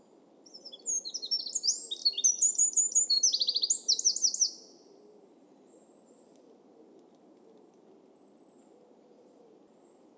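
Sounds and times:
Eurasian wren singing: 0:00.5 - 0:04.6.

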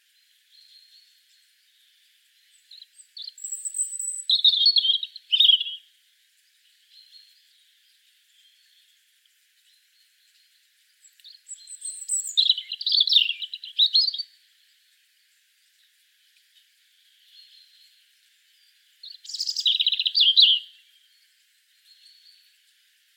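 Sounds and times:
European robin singing: 0:00.5 - 0:05.9, 0:09.6 - 0:14.7, 0:15.8 - 0:22.6.

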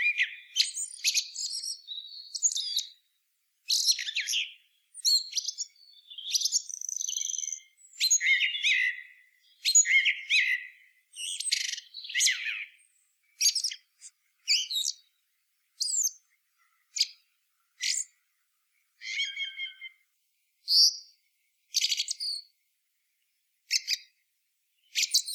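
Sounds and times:
Eurasian blackbird singing: 0:00.0 - 0:03.0, 0:03.7 - 0:15.1, 0:15.8 - 0:16.2, 0:17.8 - 0:18.2, 0:19.0 - 0:20.0, 0:21.7 - 0:22.5, 0:24.8 - 0:25.3.

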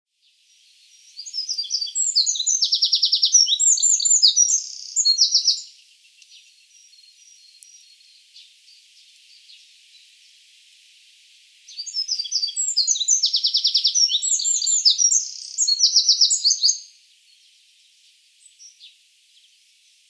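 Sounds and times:
Eurasian wren song with trills: 0:00.2 - 0:10.4, 0:11.7 - 0:20.0.

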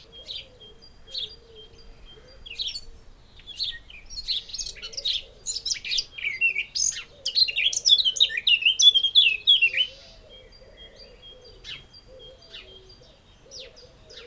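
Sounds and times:
Eurasian blackcap Sylvia atricapilla warbling song: 0:00.0 - 0:14.2.

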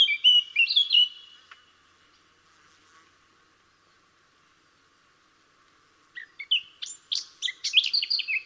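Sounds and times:
Eurasian blackcap singing: 0:00.0 - 0:01.8, 0:06.1 - 0:08.4.

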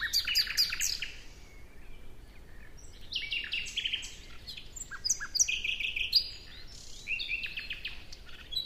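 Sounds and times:
common nightingale singing: 0:00.0 - 0:08.6.

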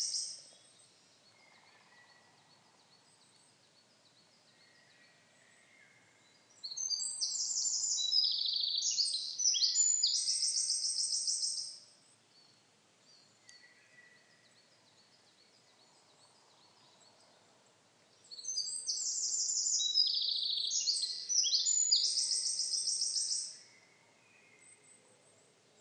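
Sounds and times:
Eurasian wren Troglodytes troglodytes singing: 0:00.0 - 0:00.4, 0:06.6 - 0:11.8, 0:18.3 - 0:23.5.

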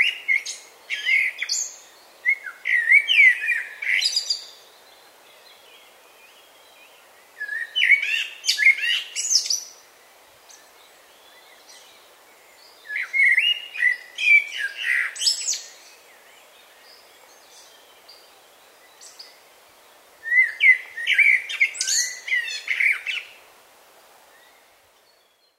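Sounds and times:
common blackbird singing: 0:00.0 - 0:04.6, 0:07.4 - 0:09.7, 0:12.8 - 0:18.2, 0:20.2 - 0:23.3
faint background hiss: 0:00.0 - 0:25.5.

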